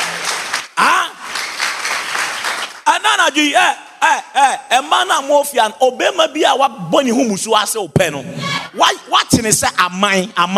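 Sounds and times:
audience clapping: 0.0 - 3.0
speech: 3.2 - 10.5.

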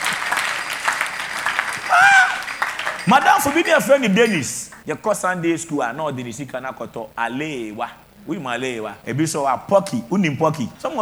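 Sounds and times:
audience clapping: 0.0 - 4.8
speech: 3.1 - 10.9.

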